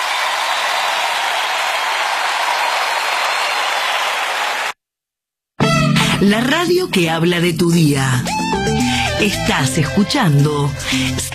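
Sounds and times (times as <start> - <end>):
audience applause: 0.0 - 4.8
speech: 6.2 - 11.3.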